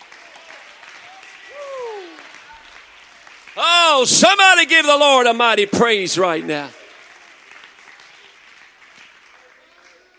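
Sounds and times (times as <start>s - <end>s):
audience clapping hands: 0.0s - 10.1s
speech: 3.6s - 6.8s.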